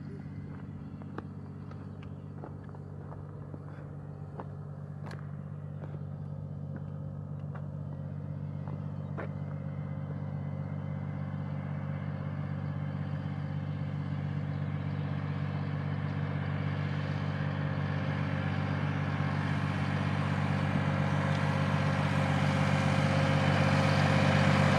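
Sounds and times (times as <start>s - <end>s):
memorial walk soundscape: 0.0s - 24.7s.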